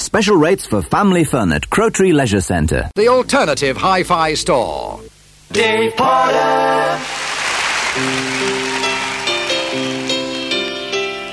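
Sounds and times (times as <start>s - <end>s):
speech: 0.1s - 7.2s, 8.0s - 8.6s
audience applause: 6.9s - 11.3s.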